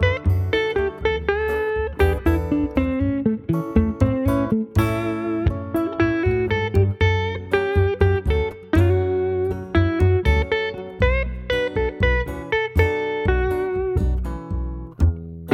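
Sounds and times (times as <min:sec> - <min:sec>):
funky groove guitar solo: 0:00.0 - 0:15.5.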